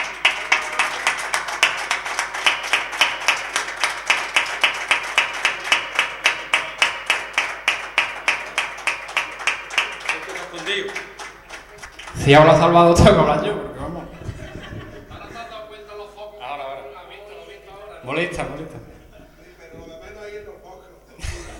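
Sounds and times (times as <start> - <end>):
audience applause: 0.0 - 13.0
laughter: 9.9 - 11.9, 13.9 - 16.1, 18.7 - 20.0, 21.0 - 21.5
speech: 12.3 - 13.6.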